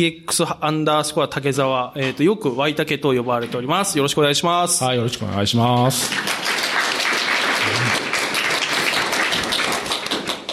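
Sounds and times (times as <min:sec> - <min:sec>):
speech: 0:00.0 - 0:06.7
crowd applauding: 0:05.8 - 0:10.5.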